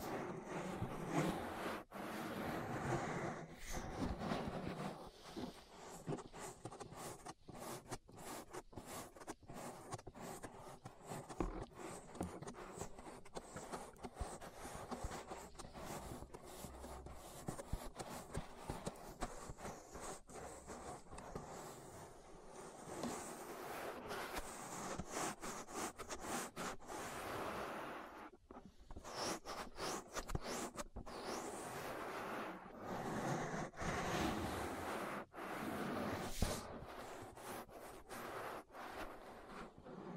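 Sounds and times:
ear massage rubbing and scratching: 0.0 - 40.1.

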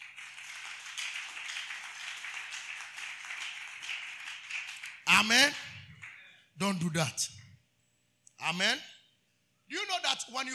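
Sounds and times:
audience clapping: 0.0 - 6.2
speech: 5.2 - 5.6, 6.6 - 7.4, 8.4 - 8.9, 9.7 - 10.5.

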